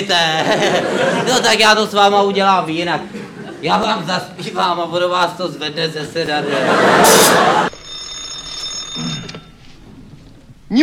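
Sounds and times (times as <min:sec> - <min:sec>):
laughter: 0:00.0 - 0:07.7
speech: 0:00.0 - 0:07.7
telephone bell ringing: 0:07.1 - 0:10.2.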